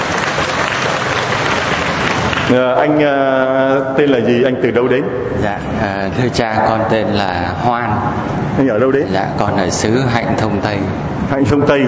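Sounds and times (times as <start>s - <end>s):
audience applause greeting a man: 0.0s - 2.6s
speech: 2.5s - 11.8s.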